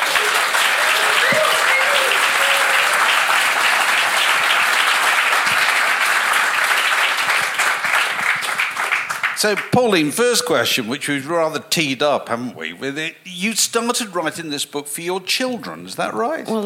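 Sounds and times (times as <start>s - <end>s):
large crowd round of applause: 0.0s - 9.9s
speech: 9.4s - 16.6s.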